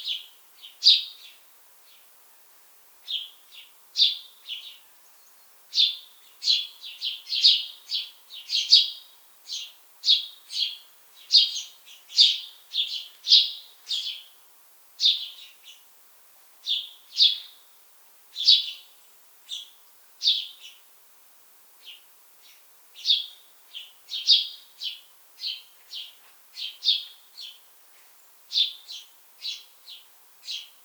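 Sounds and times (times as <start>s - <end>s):
house sparrow chirping: 0.0s - 1.4s, 3.0s - 14.3s, 15.0s - 15.8s, 16.6s - 17.6s, 18.3s - 18.9s, 19.5s - 20.8s, 21.8s - 27.6s, 28.5s - 30.8s.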